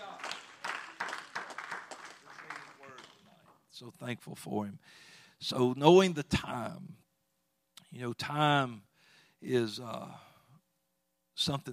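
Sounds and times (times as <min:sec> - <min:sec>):
group clapping: 0:00.0 - 0:03.6
speech: 0:03.8 - 0:07.0, 0:07.9 - 0:10.3, 0:11.4 - 0:11.7.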